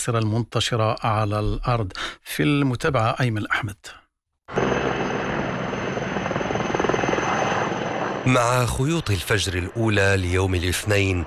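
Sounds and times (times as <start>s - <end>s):
speech: 0.0s - 4.7s, 8.2s - 11.2s
firefighting helicopter flying: 4.5s - 11.2s.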